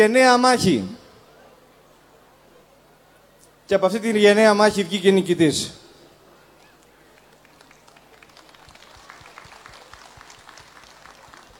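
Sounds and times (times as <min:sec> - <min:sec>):
speech: 0:00.0 - 0:01.0, 0:03.7 - 0:05.8
audience applause: 0:06.8 - 0:11.5.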